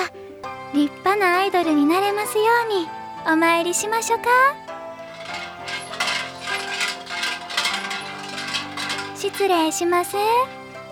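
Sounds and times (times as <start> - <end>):
speech: 0.8 - 4.7, 9.2 - 10.6
coins clattering into a wooden shrine offering box: 5.1 - 9.5.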